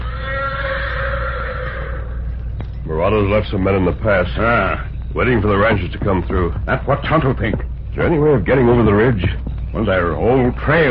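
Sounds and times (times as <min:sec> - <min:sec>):
horse whinnying in answer: 0:00.0 - 0:02.5
low rumble: 0:00.0 - 0:10.9
speech: 0:03.1 - 0:10.9.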